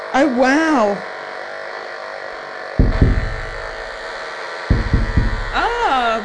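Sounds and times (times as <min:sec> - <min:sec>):
speech: 0:00.2 - 0:01.1
knife fish electrical pulses through speaker: 0:02.8 - 0:06.2.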